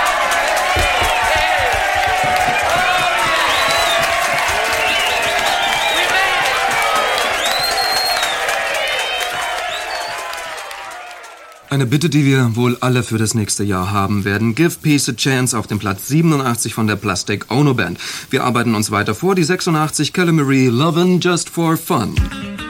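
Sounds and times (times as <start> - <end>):
crowd applause: 0.0 - 12.3
speech: 11.8 - 22.6.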